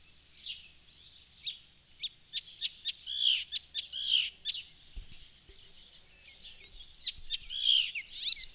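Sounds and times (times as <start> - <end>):
Icterine warbler song: 0.0 - 8.5.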